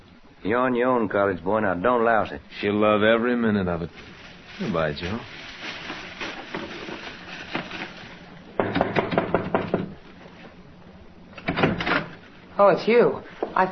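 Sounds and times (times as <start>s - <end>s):
speech: 0.4s - 5.4s, 12.6s - 13.7s
knocking on a door: 8.6s - 10.0s.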